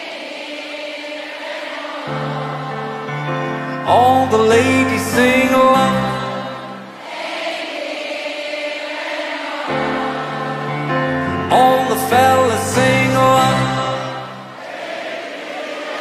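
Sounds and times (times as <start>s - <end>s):
person singing lyrics: 1.4s - 7.1s, 9.4s - 14.6s
piano medley: 1.9s - 7.2s, 9.4s - 15.0s.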